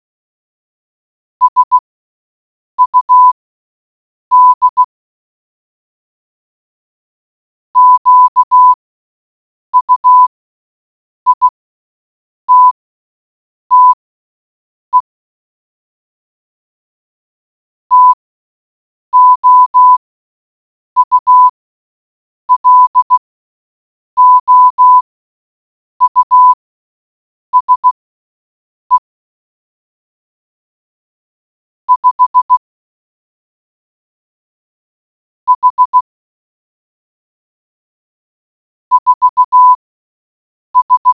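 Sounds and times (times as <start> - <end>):
morse code beeps: 1.4 - 1.8, 2.8 - 3.4, 4.3 - 4.8, 7.8 - 8.8, 9.8 - 10.3, 11.3 - 11.5, 12.5 - 12.8, 13.7 - 14.0, 17.9 - 18.2, 19.2 - 20.0, 21.0 - 21.5, 22.5 - 23.2, 24.2 - 25.0, 26.0 - 26.6, 27.6 - 28.0, 31.9 - 32.6, 35.5 - 36.1, 38.9 - 39.8, 40.8 - 41.1.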